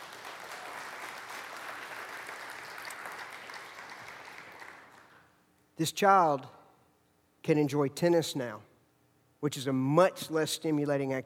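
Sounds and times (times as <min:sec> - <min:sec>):
audience clapping hands: 0:00.0 - 0:05.4
speech: 0:05.8 - 0:06.6, 0:07.4 - 0:08.7, 0:09.4 - 0:11.2.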